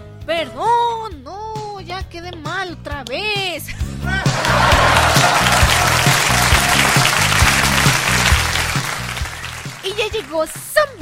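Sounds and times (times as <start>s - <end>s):
speech: 0.4s - 1.2s, 2.1s - 5.0s, 10.0s - 11.0s
laughter: 4.1s - 10.1s
applause: 4.3s - 10.8s.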